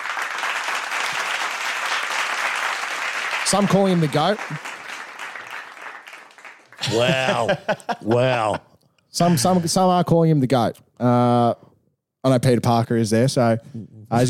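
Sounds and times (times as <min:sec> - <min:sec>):
crowd applause: 0:00.0 - 0:07.9
speech: 0:03.5 - 0:04.7, 0:06.9 - 0:14.2
laughter: 0:06.8 - 0:09.8.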